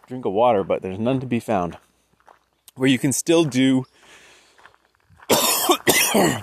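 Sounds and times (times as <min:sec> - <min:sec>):
speech: 0:00.1 - 0:01.9, 0:02.8 - 0:04.0, 0:05.3 - 0:06.4
harsh coughing with raspy throat clearing: 0:05.3 - 0:06.4.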